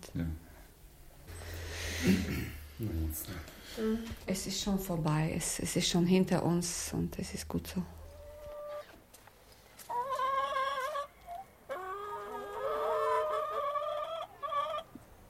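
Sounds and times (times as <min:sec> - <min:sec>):
speech: 0:00.2 - 0:00.4, 0:02.0 - 0:08.0
chickens clucking in a garden: 0:08.0 - 0:09.0, 0:09.8 - 0:15.0.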